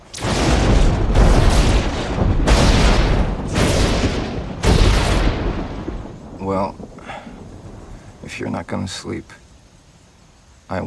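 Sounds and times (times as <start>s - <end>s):
lightning striking a tree, thunder boom: 0.0s - 7.9s
speech: 8.4s - 9.4s, 10.7s - 10.8s.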